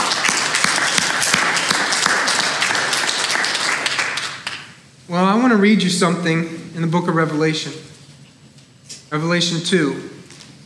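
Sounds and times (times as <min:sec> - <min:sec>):
audience hand clapping: 0:00.0 - 0:04.8
speech: 0:05.5 - 0:07.9, 0:09.1 - 0:10.2.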